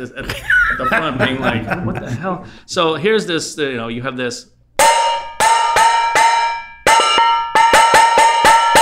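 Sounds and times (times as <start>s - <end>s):
laughter: 0.0s - 2.5s
speech: 0.0s - 4.6s
metal bowl being struck, ringing: 4.8s - 8.8s.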